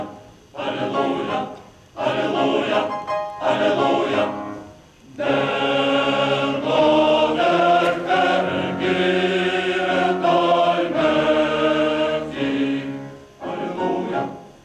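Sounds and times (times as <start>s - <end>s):
male choir singing: 0.0s - 14.5s.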